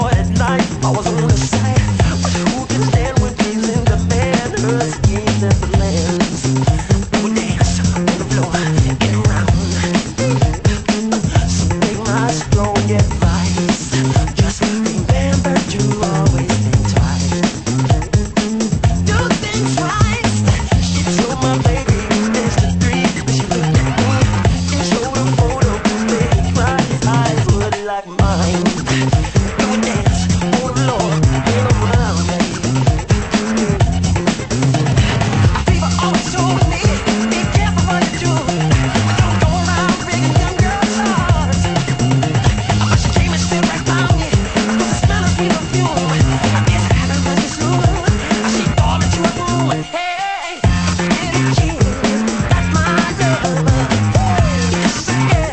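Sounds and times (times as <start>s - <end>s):
funk music: 0.0s - 55.5s.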